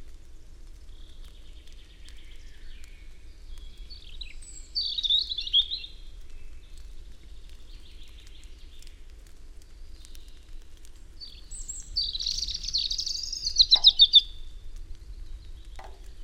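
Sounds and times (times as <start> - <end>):
European robin song: 4.2 - 5.9, 11.3 - 14.4.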